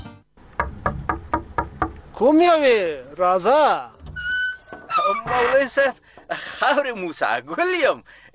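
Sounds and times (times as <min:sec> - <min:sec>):
knocking on the door of a village mullah: 0:00.6 - 0:02.0
speech: 0:02.2 - 0:04.0, 0:05.1 - 0:08.3.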